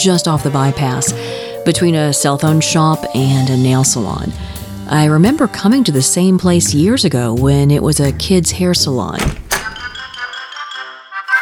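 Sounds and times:
speech: 0.0 - 9.4
office doorbell: 9.6 - 11.4.

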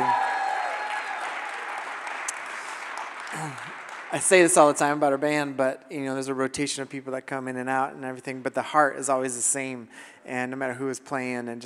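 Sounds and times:
audience applause for the band: 0.0 - 5.0
speech: 3.4 - 11.6.

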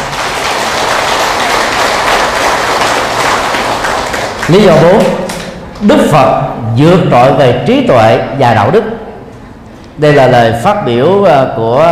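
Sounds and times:
audience applause: 0.0 - 5.4
speech: 4.5 - 9.0, 10.0 - 11.9.

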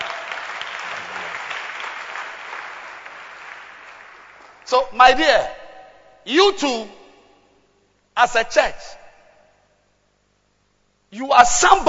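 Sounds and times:
audience applause: 0.0 - 4.7
speech: 4.7 - 5.6, 6.3 - 7.0, 8.2 - 9.0, 11.1 - 11.8.

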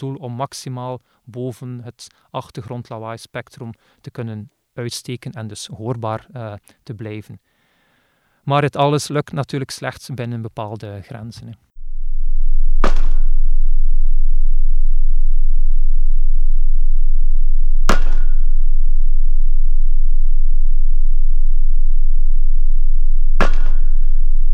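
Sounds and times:
speech: 0.0 - 7.5, 8.4 - 11.7
constant low rumble: 11.8 - 24.5
pile driving hammer strikes at an offshore wind farm: 12.8 - 13.3, 17.9 - 18.5, 23.4 - 24.2.

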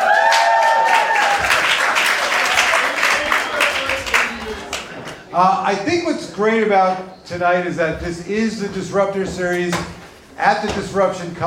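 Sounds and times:
audience whoops: 0.0 - 1.7
audience applause at the Disruptor Series Live event at TBWA Chiat Day, New York: 0.0 - 5.2
speech: 5.4 - 11.4.

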